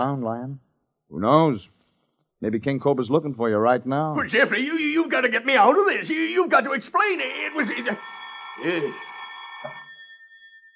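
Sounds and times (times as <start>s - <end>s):
speech: 0.0s - 1.8s, 2.4s - 9.8s
telephone ringing: 4.2s - 10.7s.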